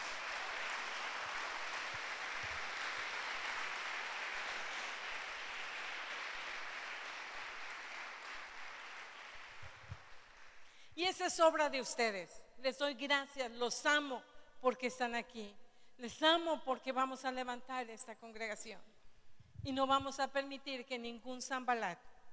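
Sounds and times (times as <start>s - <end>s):
audience applause: 0.0s - 10.6s
speech: 11.0s - 18.9s, 19.6s - 22.1s.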